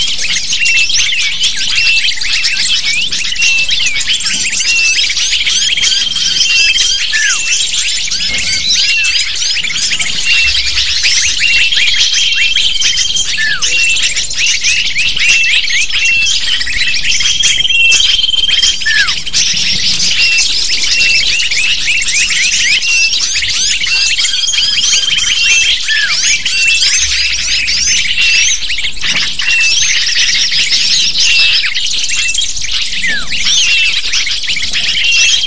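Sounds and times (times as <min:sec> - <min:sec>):
lovebirds chattering: 0:00.0 - 0:35.4.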